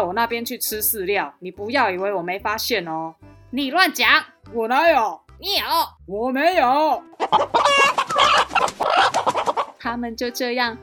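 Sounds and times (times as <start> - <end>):
speech: 0.0 - 10.8
roosters clucking: 7.2 - 9.8.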